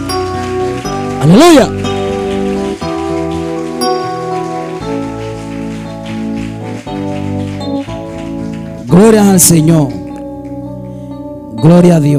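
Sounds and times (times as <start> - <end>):
audience applause: 0.0 - 9.6
speech: 1.2 - 1.8, 9.0 - 10.0, 11.6 - 12.1.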